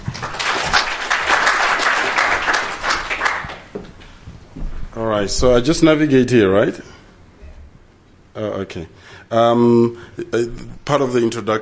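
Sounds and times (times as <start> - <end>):
audience applause welcoming a speaker to a talk: 0.0 - 3.8
speech: 5.1 - 7.0, 8.4 - 11.5.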